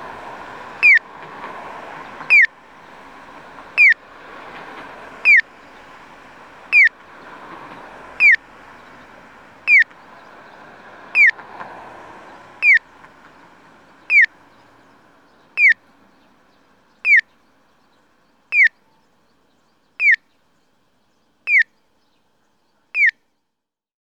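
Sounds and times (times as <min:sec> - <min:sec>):
acoustic pedestrian crossing signal piyo chirping at Anjo City Hall in Anjo Aichi: 0:00.0 - 0:01.1, 0:02.2 - 0:02.6, 0:03.8 - 0:04.0, 0:05.2 - 0:05.5, 0:06.7 - 0:07.0, 0:08.1 - 0:09.0, 0:09.6 - 0:10.1, 0:11.1 - 0:11.4, 0:12.6 - 0:12.9, 0:14.1 - 0:14.5, 0:15.6 - 0:15.9, 0:17.0 - 0:17.3, 0:18.5 - 0:18.9, 0:20.0 - 0:20.3, 0:21.5 - 0:21.7, 0:23.0 - 0:23.2.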